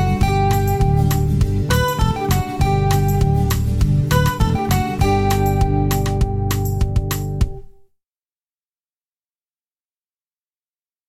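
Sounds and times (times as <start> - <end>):
country beat: 0.0 - 7.8
plucked guitar: 0.0 - 7.8.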